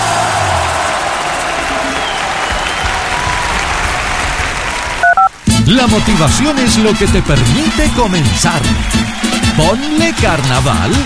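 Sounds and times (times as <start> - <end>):
audience applause: 0.0 - 11.0
speech: 5.7 - 11.0.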